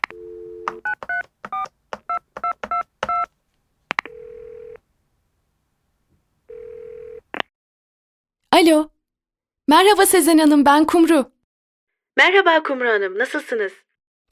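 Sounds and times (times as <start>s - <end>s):
telephone clicks: 0.0s - 3.3s
telephone dial tone: 0.1s - 0.9s, 4.1s - 4.8s, 6.5s - 7.2s
speech: 8.6s - 8.9s, 9.7s - 11.3s, 12.2s - 14.3s.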